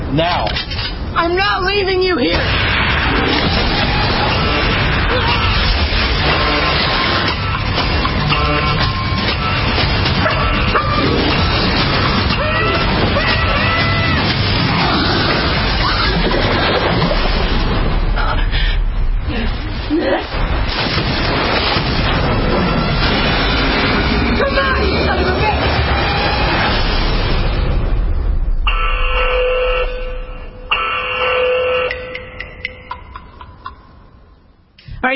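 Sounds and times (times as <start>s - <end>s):
speech: 0.1s - 2.7s
hurricane storm wind roaring: 2.2s - 30.8s
rumbling booms: 2.2s - 30.8s
crashing waves: 2.3s - 30.5s
ringing tone: 28.7s - 34.5s.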